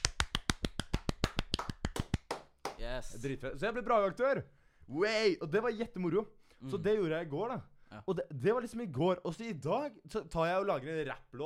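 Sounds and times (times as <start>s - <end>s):
sharp hand claps: 0.0s - 2.8s
speech: 2.9s - 11.4s.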